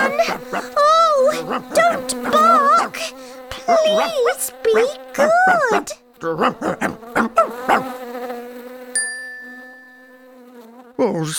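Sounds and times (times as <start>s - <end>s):
fly buzzing: 0.0s - 11.2s
speech: 1.6s - 2.4s, 3.7s - 7.9s, 11.0s - 11.3s
sharp bell-like ping: 9.0s - 10.2s.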